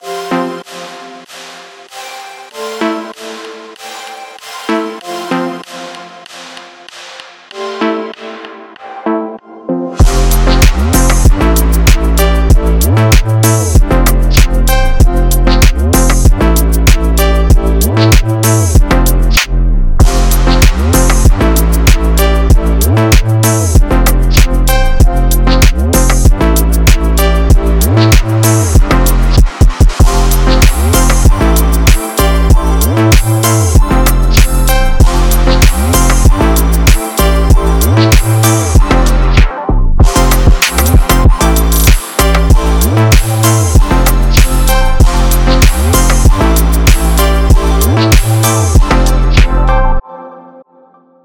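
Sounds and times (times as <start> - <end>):
drift phonk beat: 0.0 - 49.8.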